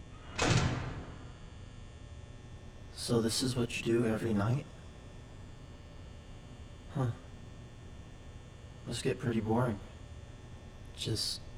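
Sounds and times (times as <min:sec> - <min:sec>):
door thudding shut: 0:00.3 - 0:01.4
speech: 0:03.0 - 0:04.8, 0:07.0 - 0:07.2, 0:08.9 - 0:09.9, 0:11.0 - 0:11.5.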